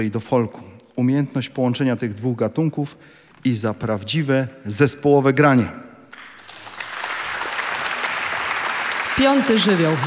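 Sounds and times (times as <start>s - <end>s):
speech: 0.0s - 5.8s, 9.2s - 10.0s
audience applause: 6.1s - 10.0s.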